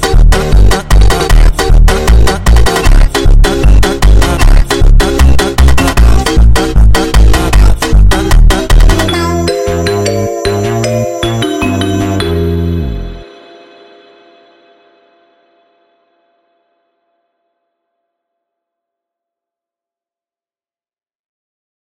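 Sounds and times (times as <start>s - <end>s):
sped up funk music: 0.0s - 13.4s.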